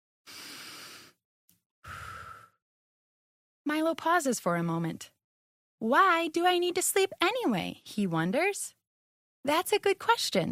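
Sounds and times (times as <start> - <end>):
deep breath: 0.3 - 1.2, 1.8 - 2.6
speech: 3.7 - 5.2, 5.8 - 8.8, 9.4 - 10.4.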